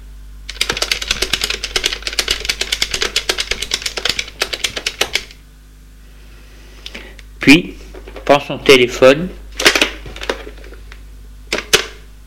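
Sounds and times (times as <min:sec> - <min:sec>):
typing on a computer keyboard: 0:00.5 - 0:05.4
speech: 0:07.4 - 0:09.4.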